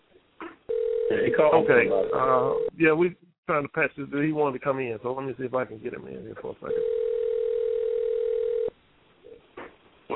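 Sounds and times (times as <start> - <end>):
phone ringing: 0.7 - 2.8, 6.7 - 8.7
speech: 1.1 - 7.0.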